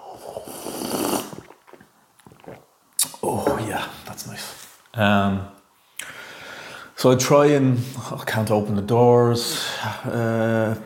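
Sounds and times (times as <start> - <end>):
loud airy slurp: 0.0 - 3.2
softer gulping and smacking sounds: 0.1 - 4.2
speech: 3.3 - 5.6, 7.0 - 10.8.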